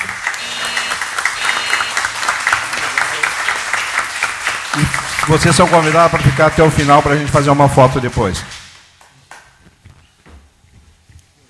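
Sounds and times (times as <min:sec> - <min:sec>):
round of applause: 0:00.0 - 0:08.6
speech: 0:05.3 - 0:08.6.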